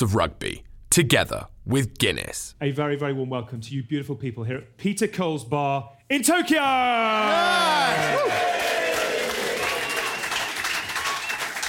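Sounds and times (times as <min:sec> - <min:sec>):
speech: 0:00.0 - 0:08.8
crowd cheering: 0:06.9 - 0:11.6.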